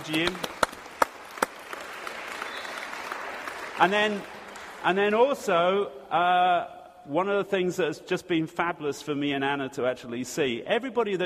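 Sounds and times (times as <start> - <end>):
audience applause: 0.0 - 5.4
speech: 0.1 - 0.5, 3.8 - 11.2.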